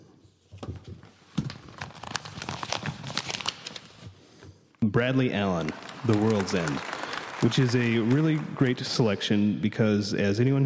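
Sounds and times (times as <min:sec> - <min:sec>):
paper envelope torn open at an awards ceremony: 0:01.5 - 0:04.0
speech: 0:04.9 - 0:10.6.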